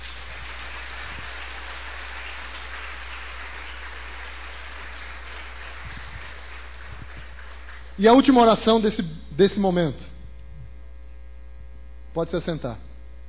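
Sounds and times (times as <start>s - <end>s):
audience applauding: 0.0s - 8.3s
speech: 8.0s - 10.2s, 12.2s - 12.9s.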